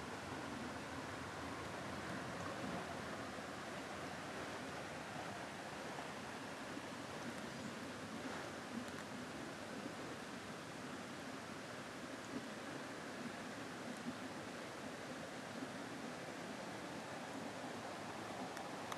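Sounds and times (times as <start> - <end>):
waterside soundscape: 0.0 - 18.9.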